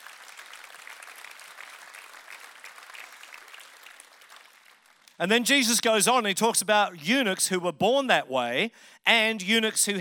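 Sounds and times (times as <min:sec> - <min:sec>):
audience applause: 0:00.0 - 0:05.2
speech: 0:05.2 - 0:09.9.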